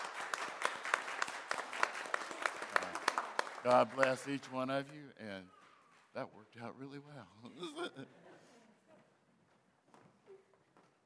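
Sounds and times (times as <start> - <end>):
round of applause: 0.0 - 5.0
speech: 3.6 - 8.2
laughter: 7.4 - 9.0.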